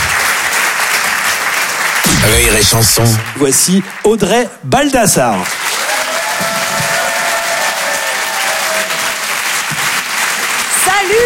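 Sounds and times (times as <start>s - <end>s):
comedy-show audience applause greeting a comedian on stage: 0.0s - 4.4s, 5.3s - 11.2s
speech: 2.2s - 6.6s.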